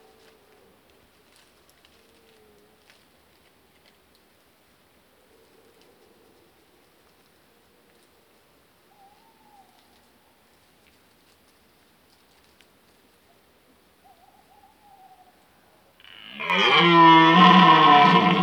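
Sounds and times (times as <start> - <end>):
red deer stag roaring: 16.1 - 18.4.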